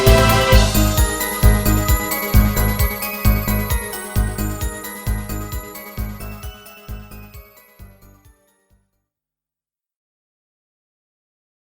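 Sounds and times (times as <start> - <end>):
fast music piece: 0.0 - 8.4.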